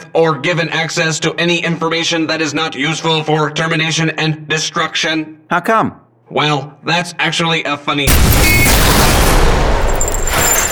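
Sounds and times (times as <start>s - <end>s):
speech: 0.2s - 9.3s
gun firing a projectile through a desk: 8.1s - 10.7s.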